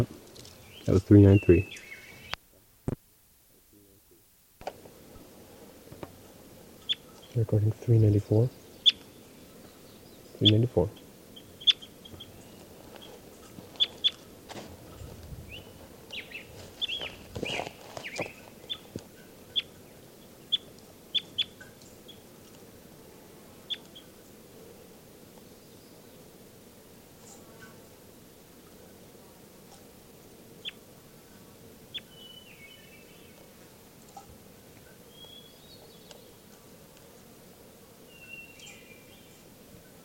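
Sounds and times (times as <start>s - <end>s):
bird chirping while being handled: 0.3s - 2.4s, 6.8s - 7.4s, 8.4s - 14.2s, 15.5s - 22.2s, 31.9s - 33.4s, 35.0s - 36.4s, 38.1s - 39.4s
speech: 0.9s - 1.9s, 7.4s - 8.6s, 10.4s - 11.0s
handling rustling and bumping: 12.6s - 19.0s.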